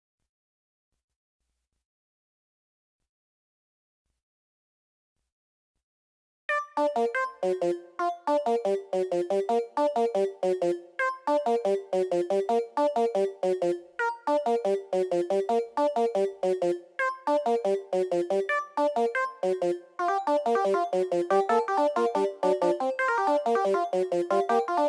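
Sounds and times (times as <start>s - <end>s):
melody: 6.7s - 24.8s.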